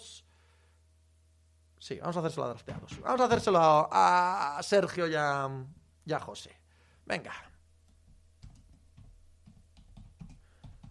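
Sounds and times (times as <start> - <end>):
speech: 1.9 - 7.5
typing on a computer keyboard: 8.4 - 10.9.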